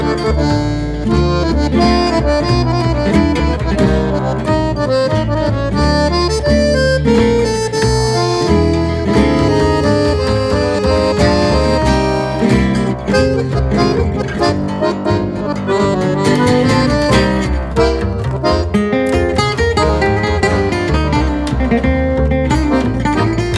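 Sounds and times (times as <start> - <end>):
waltz music: 0.0 - 23.5.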